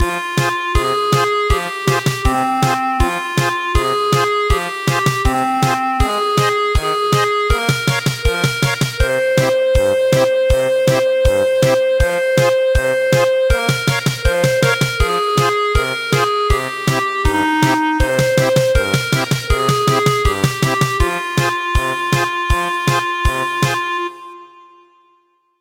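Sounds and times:
German polka music: 0.0 - 24.4.

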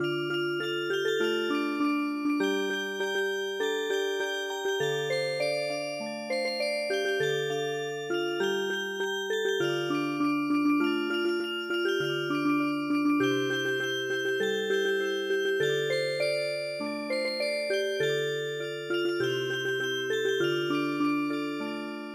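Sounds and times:
traditional music box: 0.0 - 22.1.

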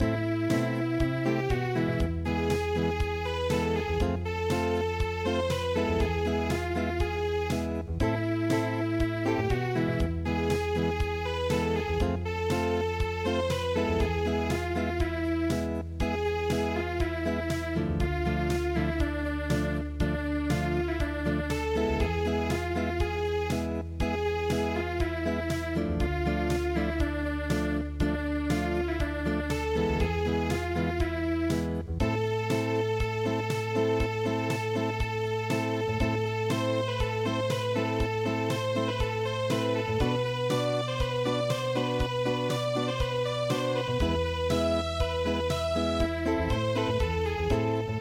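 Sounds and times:
unplugged midi music: 0.0 - 47.9.

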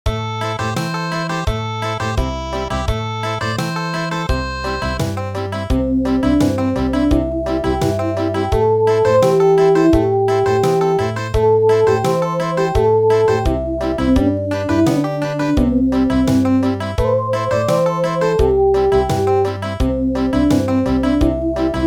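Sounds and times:
country music: 0.1 - 21.8.

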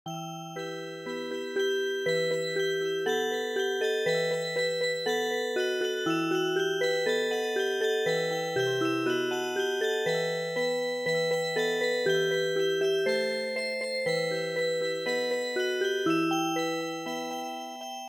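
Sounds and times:
traditional music box: 0.1 - 18.0.

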